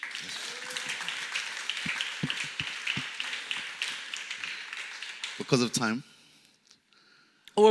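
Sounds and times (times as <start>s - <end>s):
audience clapping: 0.0s - 6.0s
speech: 5.4s - 6.1s.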